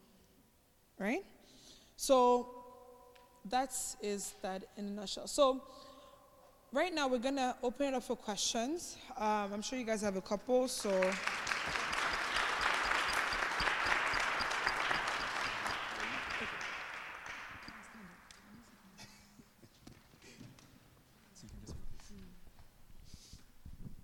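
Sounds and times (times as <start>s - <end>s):
speech: 1.0s - 1.4s, 2.0s - 2.6s, 3.4s - 5.9s, 6.7s - 11.8s
audience clapping: 10.8s - 18.5s.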